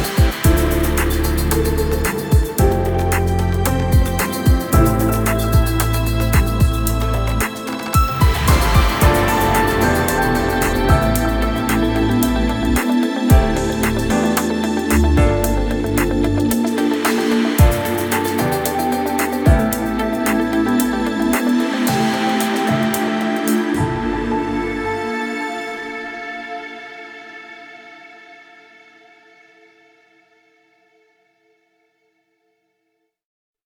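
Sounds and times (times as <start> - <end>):
intro music without sound logo: 0.0 - 25.8.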